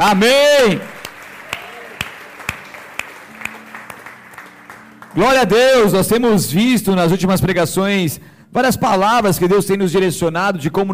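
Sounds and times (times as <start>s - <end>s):
speech: 0.0s - 0.9s, 5.2s - 10.9s
audience applauding with rhythmic claps: 0.6s - 6.0s.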